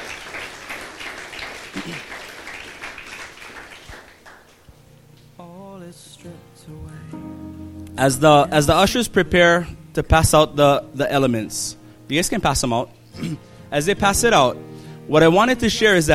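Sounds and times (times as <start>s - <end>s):
audience clapping: 0.0s - 4.7s
speech: 1.8s - 2.2s, 8.0s - 16.1s
sustained melodic music: 4.8s - 16.1s.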